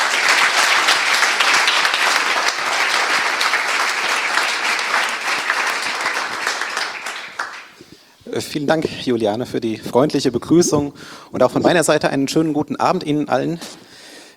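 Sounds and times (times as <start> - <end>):
audience applause: 0.0 - 7.9
speech: 8.4 - 13.8.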